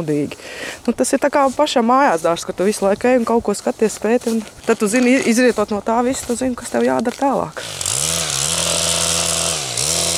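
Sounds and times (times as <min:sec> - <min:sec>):
speech: 0:00.0 - 0:08.0
chainsaw running: 0:07.0 - 0:10.1.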